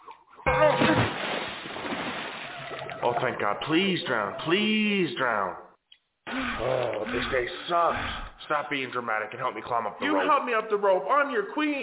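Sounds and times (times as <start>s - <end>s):
water splashing from a tipped oak bucket: 0.5s - 3.6s
speech: 3.1s - 5.6s, 6.3s - 11.8s.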